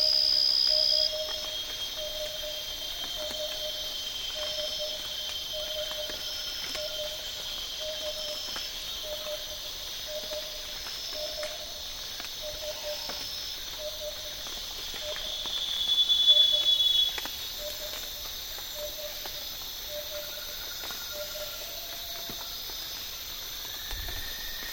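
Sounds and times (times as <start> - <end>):
insect chorus in Borneo rainforest at Tawau Hills national park: 0.0 - 24.7.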